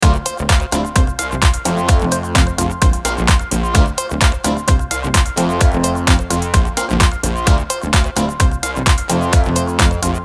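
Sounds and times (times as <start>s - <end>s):
corporate dance loop: 0.0s - 10.2s.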